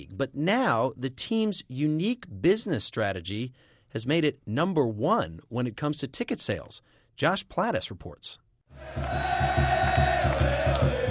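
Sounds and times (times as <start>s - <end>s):
speech: 0.0s - 10.1s
crowd cheering at a Seattle Sounders soccer match at Qwest Field: 8.8s - 11.0s.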